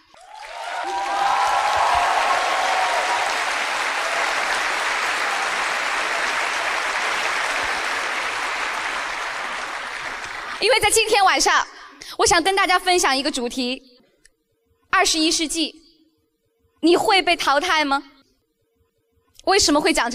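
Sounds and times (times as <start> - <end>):
audience applause: 0.1 - 10.7
speech: 10.6 - 13.9, 15.0 - 15.8, 16.8 - 18.1, 19.4 - 20.1.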